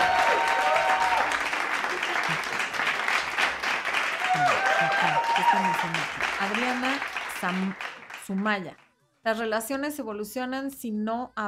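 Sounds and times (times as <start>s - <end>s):
applause: 0.0s - 8.8s
speech: 4.4s - 11.4s.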